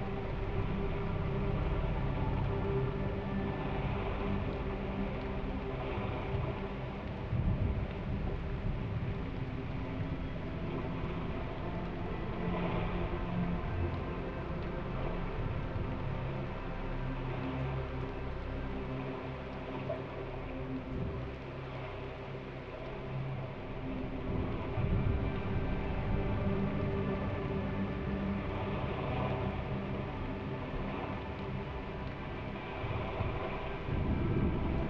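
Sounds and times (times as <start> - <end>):
rain: 0.0 - 34.8.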